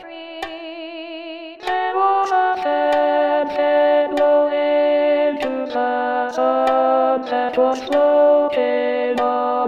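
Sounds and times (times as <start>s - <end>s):
alto singing a chorale: 1.6s - 9.6s.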